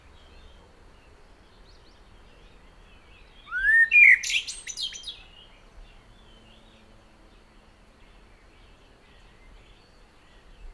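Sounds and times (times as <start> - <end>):
common blackbird song: 0.0 - 10.7.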